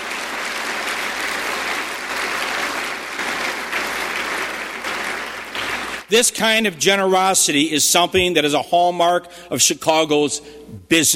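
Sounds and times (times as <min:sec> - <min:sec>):
audience applause: 0:00.0 - 0:06.1
speech: 0:06.1 - 0:11.1.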